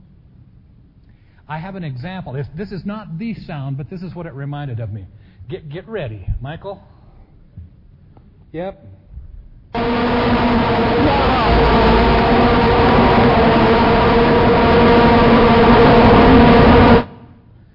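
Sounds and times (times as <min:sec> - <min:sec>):
speech: 0:01.5 - 0:07.0, 0:08.5 - 0:09.0
droning vuvuzela horns: 0:09.8 - 0:17.4.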